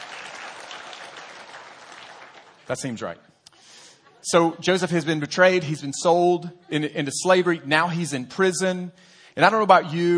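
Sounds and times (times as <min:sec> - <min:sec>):
audience clapping: 0:00.0 - 0:03.2
speech: 0:02.7 - 0:10.1.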